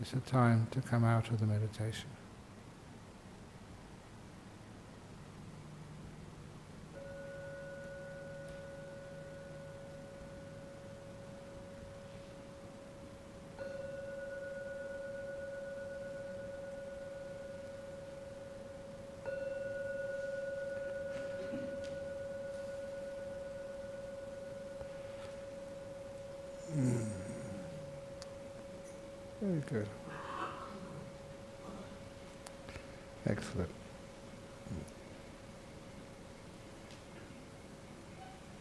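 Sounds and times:
speech: 0.0s - 2.2s
gong ringing: 7.0s - 33.1s.

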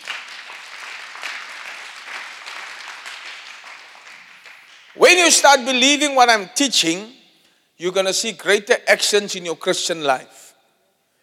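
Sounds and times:
audience clapping: 0.0s - 5.4s
speech: 5.0s - 7.2s, 7.8s - 10.4s.

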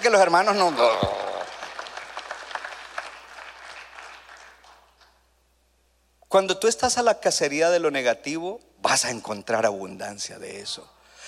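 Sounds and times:
speech: 0.0s - 1.2s, 6.3s - 11.0s
audience applauding: 0.0s - 5.2s.

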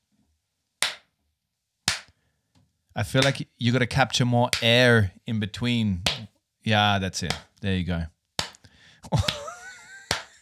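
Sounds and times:
big echoey hand clap: 0.8s - 1.1s, 1.9s - 2.1s, 3.2s - 3.4s, 8.4s - 8.6s, 9.2s - 10.3s
speech: 3.0s - 8.2s, 9.0s - 9.4s
laughter: 9.0s - 10.3s.

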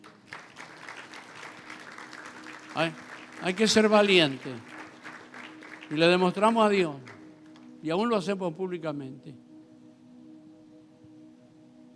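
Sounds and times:
audience applause: 0.0s - 7.6s
speech: 2.8s - 4.7s, 5.9s - 7.1s, 7.8s - 9.4s.

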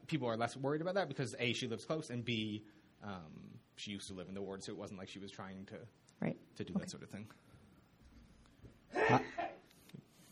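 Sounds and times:
speech: 0.1s - 7.5s, 8.9s - 9.4s
person sneezing: 8.9s - 9.6s.

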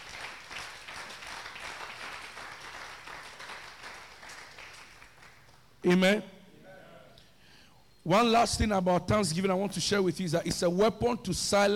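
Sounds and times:
audience clapping hands: 0.0s - 5.7s
speech: 5.8s - 6.4s, 8.0s - 11.7s.

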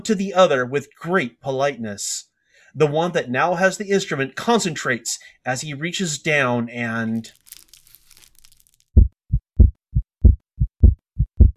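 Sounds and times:
speech: 0.0s - 7.4s
heartbeat: 9.0s - 11.5s.

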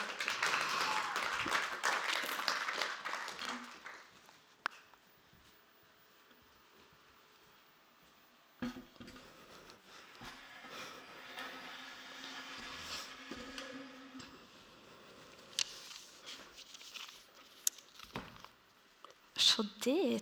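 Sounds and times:
audience clapping: 0.0s - 4.5s
speech: 19.5s - 20.2s.

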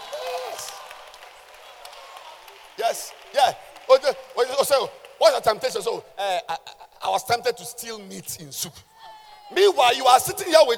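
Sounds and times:
audience clapping: 0.0s - 6.0s
speech: 2.8s - 8.9s, 9.5s - 10.7s.

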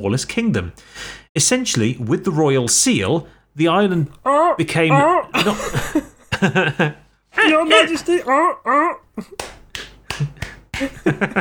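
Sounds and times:
speech: 0.0s - 9.6s, 10.2s - 11.4s
laughter: 4.2s - 9.4s, 10.2s - 11.4s
person clapping imitating a seal: 9.2s - 11.1s.

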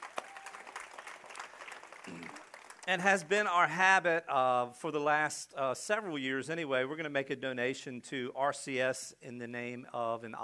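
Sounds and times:
faint church congregation applause honoring fathers on Father's Day: 0.0s - 3.4s
speech: 2.1s - 10.4s.

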